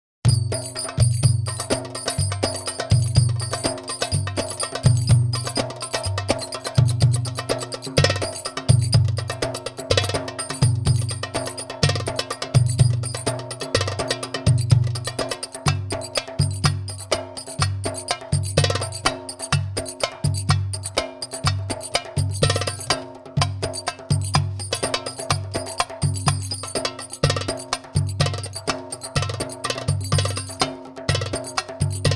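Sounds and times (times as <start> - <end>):
saidi drums for training: 0.2 - 32.1.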